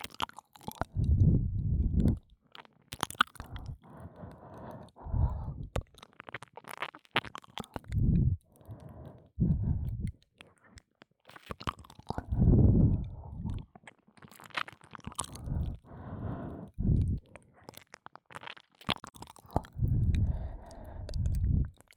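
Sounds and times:
ear licking in the right ear: 0:00.6 - 0:02.3, 0:03.2 - 0:05.9, 0:07.6 - 0:10.2, 0:12.0 - 0:13.7, 0:14.6 - 0:17.3, 0:19.1 - 0:21.9
breathing and ear licking in the right ear: 0:03.4 - 0:05.7, 0:08.0 - 0:10.1, 0:15.3 - 0:17.2, 0:19.8 - 0:21.7.

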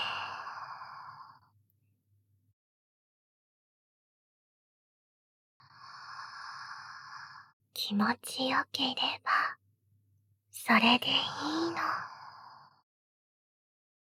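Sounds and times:
slow breathing: 0:00.0 - 0:01.5, 0:05.6 - 0:07.6, 0:11.3 - 0:12.8
speech: 0:07.8 - 0:09.6, 0:10.6 - 0:12.1.

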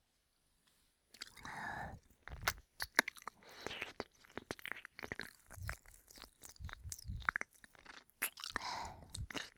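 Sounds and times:
ear licking: 0:01.1 - 0:09.5
ejaculation sound: 0:03.6 - 0:09.5.

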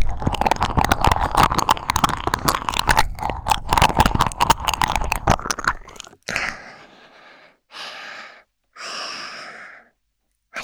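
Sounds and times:
ear licking: 0:00.0 - 0:06.7.

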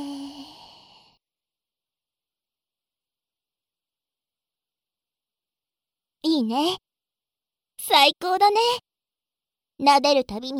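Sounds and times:
deep exhale during a guided relaxation breathing exercise: 0:00.0 - 0:01.2
speech: 0:06.2 - 0:06.9, 0:07.8 - 0:08.9, 0:09.8 - 0:10.5.

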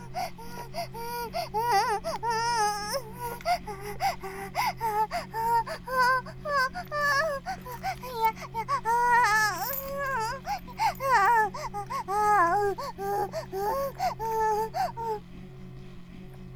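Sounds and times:
vibrator buzzing: 0:00.0 - 0:16.2.

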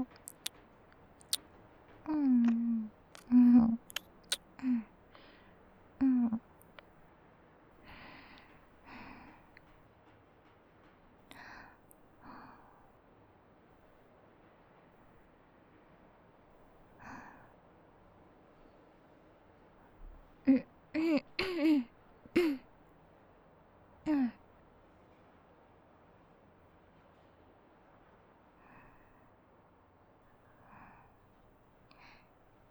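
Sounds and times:
kissing: 0:00.0 - 0:00.6, 0:01.2 - 0:01.5, 0:02.1 - 0:05.3, 0:20.5 - 0:21.8, 0:22.4 - 0:22.6.

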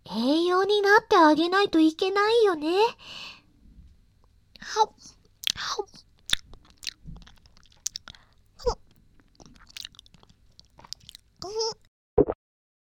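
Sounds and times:
speech: 0:00.1 - 0:03.3, 0:04.6 - 0:06.0
wet chewing and biting mouth sounds: 0:05.3 - 0:11.8.

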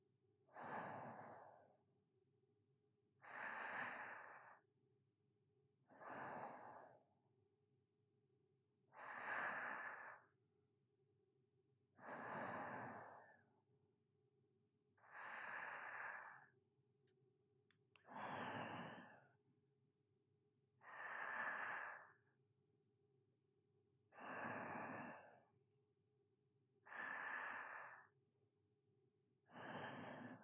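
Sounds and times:
sleeping breathing ASMR: 0:00.5 - 0:01.8, 0:03.2 - 0:04.6, 0:05.9 - 0:07.2, 0:08.9 - 0:10.4, 0:12.0 - 0:13.5, 0:15.0 - 0:16.5, 0:18.0 - 0:19.4, 0:20.8 - 0:22.2, 0:24.2 - 0:25.5, 0:26.9 - 0:28.1, 0:29.5 - 0:30.4.

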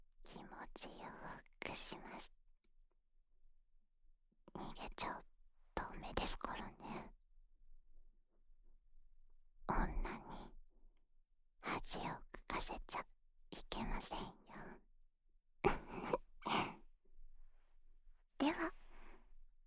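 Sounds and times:
person whispering in the right ear: 0:00.3 - 0:02.3, 0:04.6 - 0:05.2, 0:05.8 - 0:07.1, 0:09.7 - 0:10.5, 0:11.6 - 0:14.8, 0:15.7 - 0:16.8, 0:18.4 - 0:19.1.

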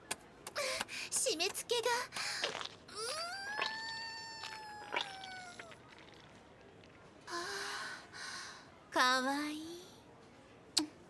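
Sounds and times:
faint noise: 0:00.0 - 0:11.0
speech: 0:01.3 - 0:02.6, 0:09.0 - 0:09.7
distressed person sobbing and wailing: 0:03.0 - 0:05.7.

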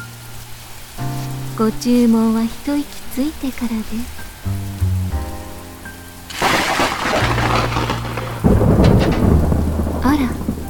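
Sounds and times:
speech: 0:01.6 - 0:04.6
nearby thunder clap during rainstorm: 0:06.3 - 0:10.6.

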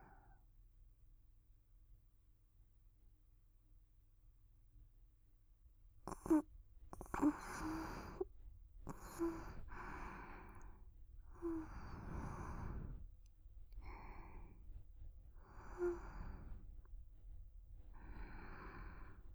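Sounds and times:
sleeping breath: 0:06.1 - 0:16.9, 0:17.9 - 0:19.3.

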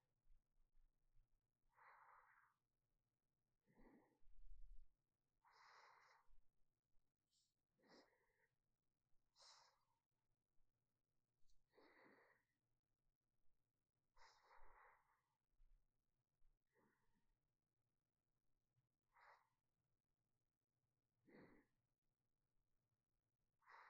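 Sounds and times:
sleeping breath: 0:01.7 - 0:02.8, 0:03.6 - 0:04.6, 0:05.4 - 0:06.4, 0:07.3 - 0:08.6, 0:09.2 - 0:10.2, 0:11.5 - 0:12.6, 0:14.1 - 0:15.5, 0:16.7 - 0:17.2, 0:19.0 - 0:19.8, 0:21.2 - 0:21.8, 0:23.6 - 0:23.8.

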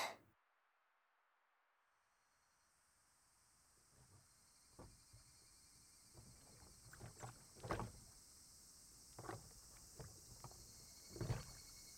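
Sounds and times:
carp swimming: 0:05.6 - 0:11.9
water sound of paddling: 0:06.2 - 0:08.1, 0:09.1 - 0:11.7.

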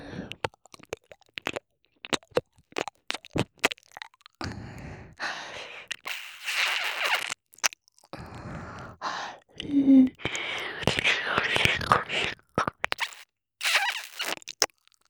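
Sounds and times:
ear licking ASMR: 0:00.3 - 0:04.8, 0:05.6 - 0:08.9, 0:10.2 - 0:14.8
hair sniffing ASMR: 0:05.9 - 0:07.4, 0:11.0 - 0:14.4.

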